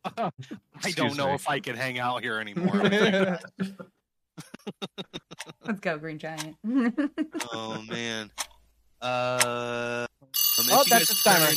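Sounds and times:
laughter: 0:00.0 - 0:01.6, 0:02.2 - 0:05.8, 0:06.6 - 0:08.2
speech: 0:00.2 - 0:03.9, 0:05.7 - 0:11.5
timer alarm ringing: 0:10.4 - 0:11.5.

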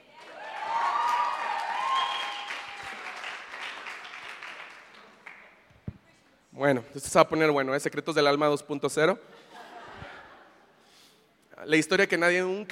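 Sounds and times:
audience applause: 0:00.1 - 0:05.6
speech: 0:06.6 - 0:09.5, 0:11.7 - 0:12.7
laughter: 0:09.3 - 0:10.8.

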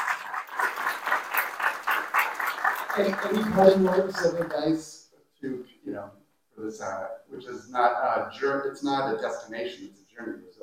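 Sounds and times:
crowd, audience round of applause: 0:00.0 - 0:04.6
speech: 0:03.0 - 0:05.6, 0:06.7 - 0:10.3.

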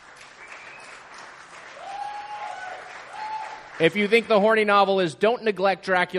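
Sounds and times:
audience clapping: 0:00.0 - 0:04.9
speech: 0:03.8 - 0:06.1.

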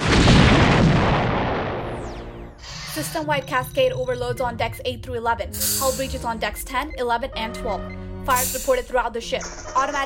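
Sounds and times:
energy beam striking a starship's shields, audio drama effect: 0:00.0 - 0:02.6
speech: 0:03.0 - 0:10.0.

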